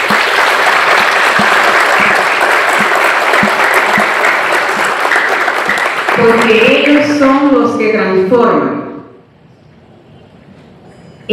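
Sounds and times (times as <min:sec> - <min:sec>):
audience applause: 0:00.0 - 0:06.8
speech: 0:06.2 - 0:08.8.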